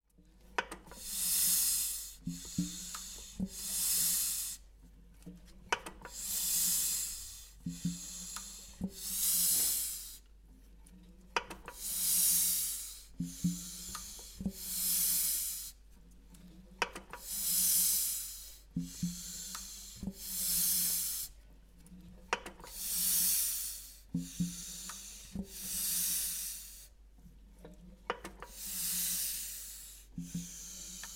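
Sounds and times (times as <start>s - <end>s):
motor pump: 0.7s - 4.6s, 5.7s - 10.2s, 11.5s - 15.7s, 17.0s - 21.3s, 22.4s - 26.8s, 28.2s - 31.1s.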